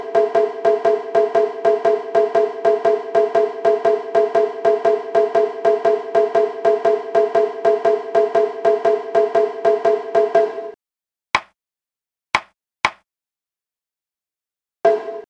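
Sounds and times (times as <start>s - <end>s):
shime drum sandan gaeshi rhythm: 0.0s - 10.6s.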